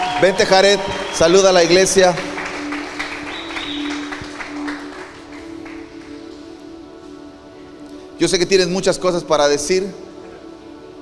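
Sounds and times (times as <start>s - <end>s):
welcome applause from church audience: 0.0s - 6.4s
speech: 0.2s - 2.3s, 8.2s - 10.0s.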